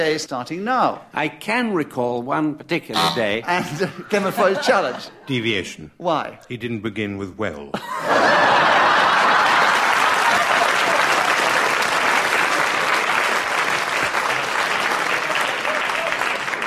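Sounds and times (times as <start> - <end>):
speech: 0.0 - 8.6
laughter: 3.0 - 5.6, 7.7 - 11.6
audience clapping: 8.7 - 16.6.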